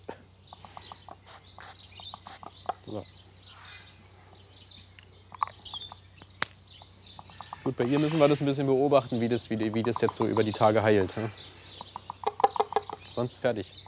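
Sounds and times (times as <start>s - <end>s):
birds chirping: 0.0s - 13.8s
speech: 2.9s - 3.2s, 7.6s - 11.6s, 13.2s - 13.8s.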